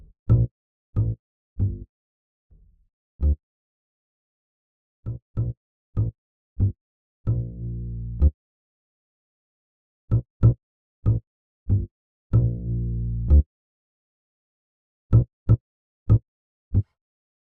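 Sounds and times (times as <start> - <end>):
bass: 0.0 - 1.9, 2.5 - 3.4, 5.0 - 8.4, 10.1 - 13.5, 15.1 - 17.3.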